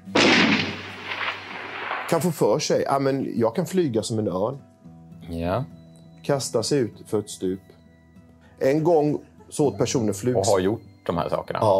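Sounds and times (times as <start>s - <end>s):
gunshot sound effect: 0.0s - 2.5s
speech: 2.1s - 4.7s, 5.3s - 7.8s, 8.6s - 11.7s.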